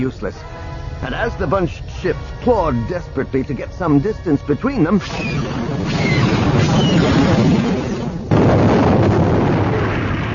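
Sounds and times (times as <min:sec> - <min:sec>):
speech: 0:00.0 - 0:05.8
heavy roaring torpedo explosion rumble: 0:05.0 - 0:10.3.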